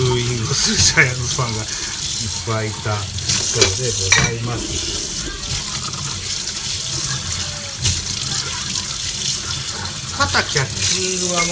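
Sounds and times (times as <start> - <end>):
dishes being washed under a running tap: 0.0 - 11.5
speech: 0.6 - 5.4, 10.2 - 11.5.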